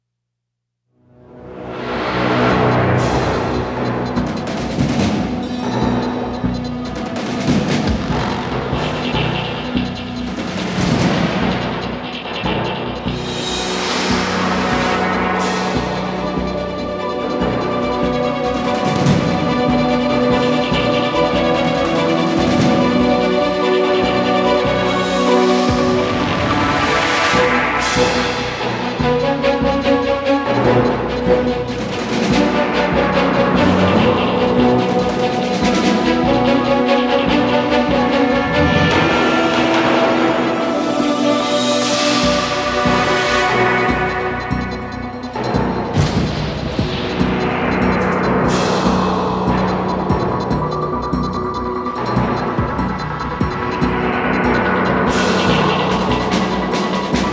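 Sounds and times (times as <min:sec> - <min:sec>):
aircraft dogfight combat: 0:02.4 - 0:57.3.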